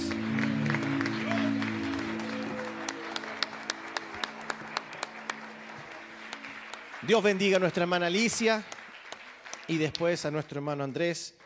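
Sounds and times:
audience applause: 0:00.0 - 0:11.4
speech: 0:07.1 - 0:08.8, 0:09.7 - 0:11.4.

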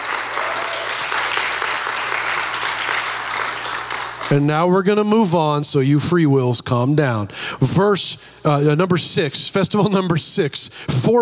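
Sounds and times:
church crowd applauding: 0:00.0 - 0:04.5
speech: 0:04.3 - 0:11.2.

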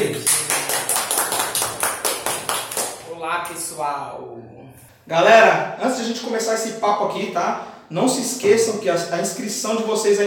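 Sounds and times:
applause: 0:00.0 - 0:03.1
speech: 0:03.5 - 0:10.2.

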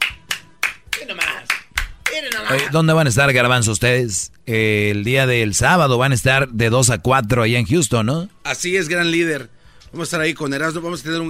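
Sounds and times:
applause and clapping: 0:00.0 - 0:02.8
speech: 0:02.2 - 0:11.2.

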